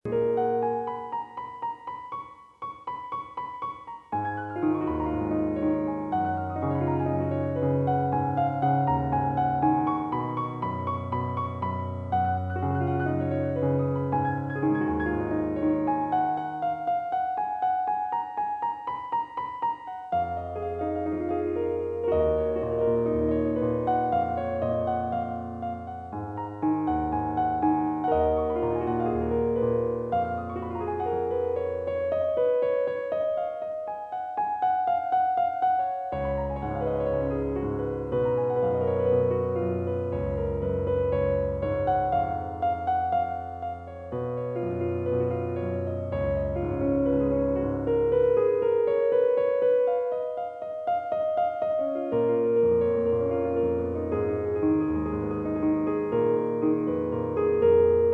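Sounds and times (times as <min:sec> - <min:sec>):
piano: 0:00.0 - 0:58.1.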